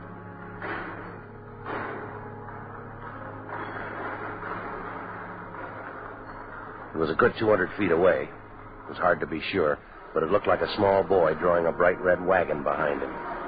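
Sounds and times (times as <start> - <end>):
church main entrance doors opening: 0.0 - 13.4
speech: 7.0 - 13.3.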